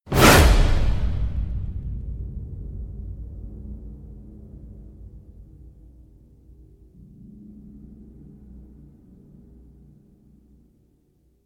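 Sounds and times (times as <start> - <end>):
thump: 0.1 - 2.3.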